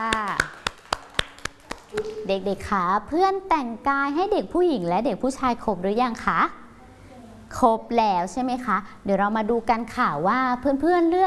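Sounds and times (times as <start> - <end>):
children clapping hands: 0.0 - 2.2
speech: 2.3 - 6.6, 7.6 - 11.2.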